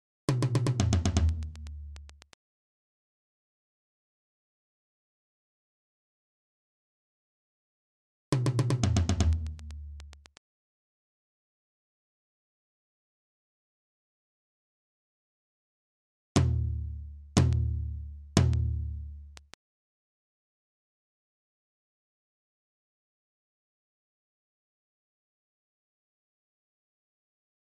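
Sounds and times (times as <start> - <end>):
tom-tom drums: 0.3 - 2.4, 8.3 - 10.4, 16.4 - 19.5.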